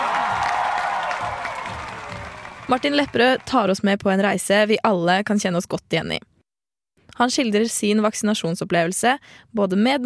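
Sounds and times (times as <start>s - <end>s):
audience applause: 0.0s - 3.7s
speech: 2.7s - 6.3s, 7.1s - 10.0s.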